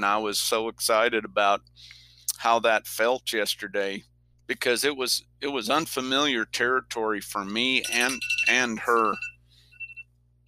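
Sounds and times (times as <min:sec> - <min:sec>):
speech: 0:00.0 - 0:09.3
alarm going off: 0:07.8 - 0:10.0.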